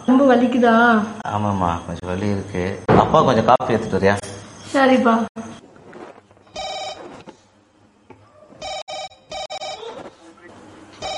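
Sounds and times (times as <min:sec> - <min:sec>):
speech: 0:00.2 - 0:05.6
electronic telephone ringing with an incoming call seemingly from abroad: 0:06.5 - 0:07.1, 0:08.6 - 0:09.9.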